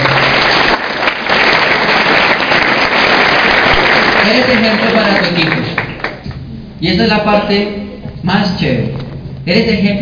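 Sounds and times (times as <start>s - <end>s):
applause: 0.0s - 6.3s
speech: 4.2s - 5.6s, 6.8s - 9.9s.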